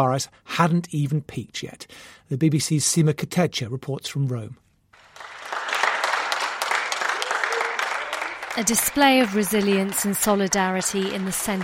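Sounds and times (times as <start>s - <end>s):
speech: 0.0s - 4.6s, 8.6s - 11.6s
people clapping from balconies: 5.0s - 11.6s.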